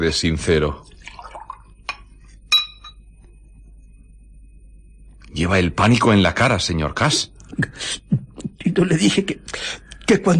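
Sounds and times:
speech: 0.0s - 0.9s, 5.4s - 10.3s
drink pouring into a glass: 0.9s - 1.9s
glass clinks: 1.9s - 3.1s.

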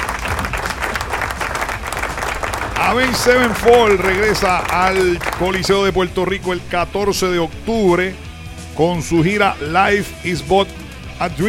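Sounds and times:
crowd applause at a rock concert: 0.0s - 6.4s
speech: 2.9s - 8.2s, 8.8s - 11.4s.

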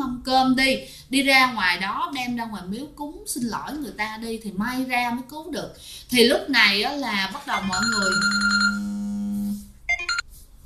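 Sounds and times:
speech: 0.3s - 8.8s
telephone ringing with an electronic tone: 7.6s - 9.2s, 9.9s - 10.2s.

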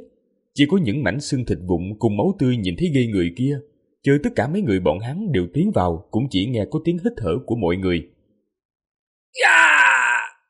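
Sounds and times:
speech: 0.0s - 8.2s, 9.3s - 9.6s
anguished wailing scream: 9.4s - 10.4s.

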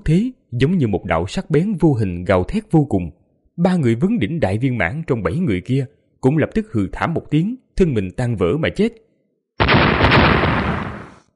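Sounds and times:
speech: 0.0s - 9.0s
loud explosions: 9.6s - 11.2s.

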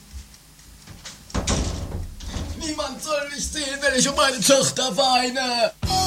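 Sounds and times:
door closing: 0.9s - 3.6s
speech: 2.9s - 5.9s.

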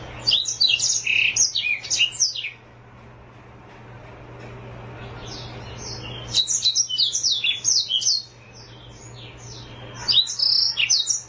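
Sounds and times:
Oriental magpie-robin singing: 0.0s - 2.6s, 5.1s - 11.2s.

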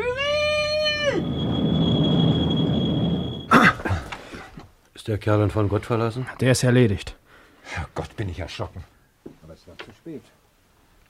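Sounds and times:
tram approaching on rails: 0.0s - 3.6s
speech: 5.0s - 8.9s, 9.6s - 10.4s.

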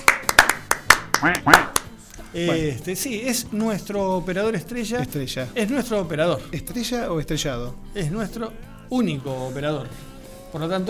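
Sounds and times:
scattered hand claps for the radio station's operator: 0.0s - 2.0s
speech: 1.2s - 10.8s.

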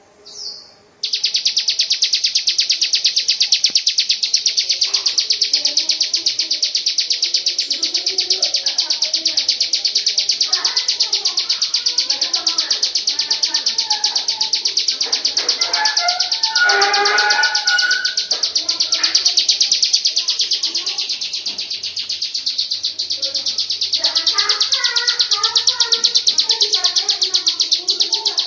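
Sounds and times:
lovebird singing a long ngekek song: 0.3s - 28.4s.

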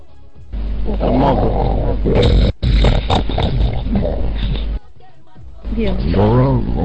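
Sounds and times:
speech: 0.9s - 3.2s, 5.8s - 6.8s
big cat roaring: 0.9s - 4.6s, 6.1s - 6.8s.

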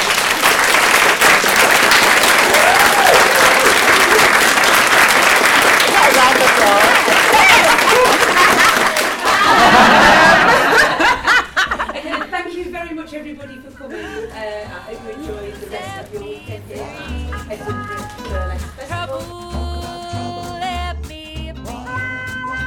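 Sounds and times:
audience clapping for a panel at the Hebden Bridge Burlesque Festival: 0.0s - 11.4s
laughter: 7.8s - 12.5s.

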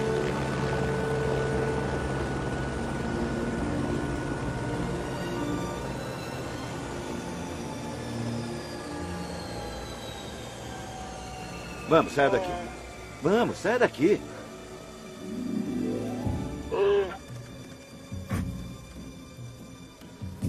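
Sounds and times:
helicopter: 0.0s - 20.4s
speech: 11.9s - 14.4s.

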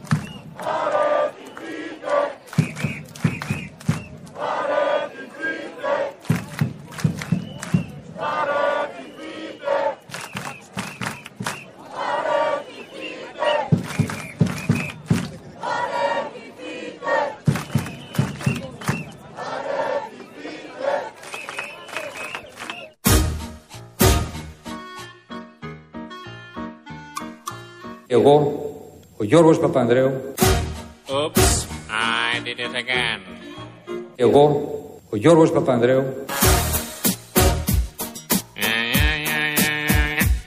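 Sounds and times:
large crowd chanting at a square protest: 0.1s - 22.9s
upbeat music: 23.0s - 28.0s, 30.4s - 34.5s, 36.3s - 40.4s
speech: 29.3s - 30.3s, 34.2s - 36.4s.

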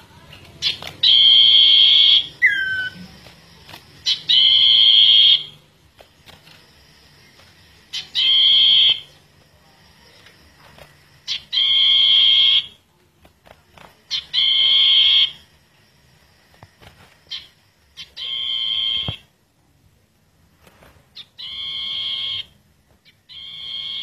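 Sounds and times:
bird song of long and slurred whistles: 0.6s - 3.0s, 4.0s - 5.6s, 7.9s - 9.1s, 11.3s - 12.7s, 14.1s - 15.4s, 17.3s - 19.2s, 21.2s - 24.0s.

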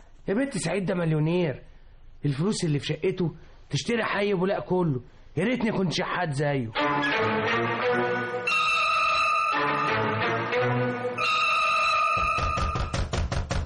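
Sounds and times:
speech: 0.3s - 8.6s
bright sustained musical tones: 6.8s - 12.9s
loud rapid knocking on a door: 12.2s - 13.6s.

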